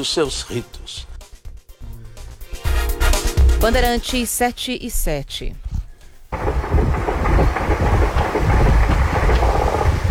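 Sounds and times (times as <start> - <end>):
speech: 0.0 - 1.1, 3.6 - 5.6
several helicopters roaring: 6.3 - 10.0.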